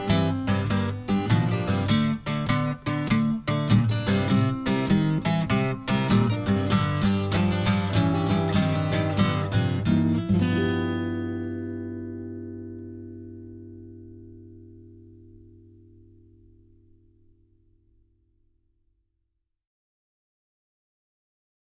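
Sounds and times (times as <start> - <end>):
guitar playback: 0.0 - 17.5.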